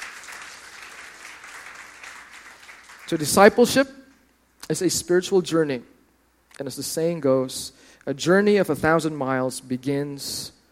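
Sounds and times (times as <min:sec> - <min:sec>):
church congregation clapping in praise: 0:00.0 - 0:03.9
speech: 0:03.1 - 0:04.0, 0:04.7 - 0:06.0, 0:06.6 - 0:10.6.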